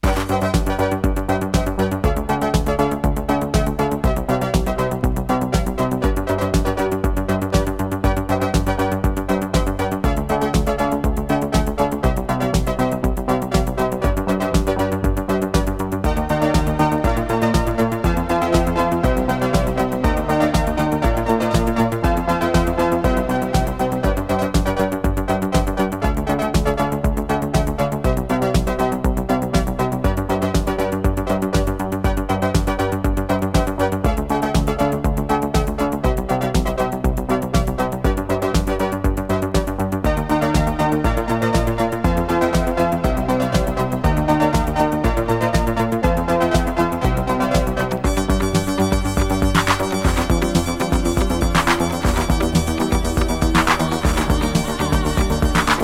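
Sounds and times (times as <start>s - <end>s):
instrumental music: 0.0s - 55.8s.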